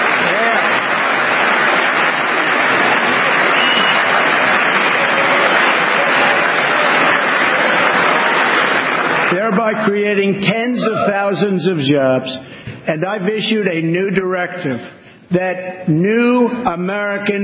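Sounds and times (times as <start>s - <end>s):
audience applause: 0.0s - 9.7s
speech: 9.7s - 17.4s.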